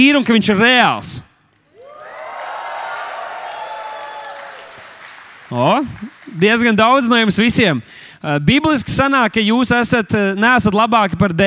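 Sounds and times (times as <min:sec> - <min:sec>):
speech: 0:00.0 - 0:01.3, 0:05.5 - 0:11.4
audience applause: 0:01.8 - 0:07.1.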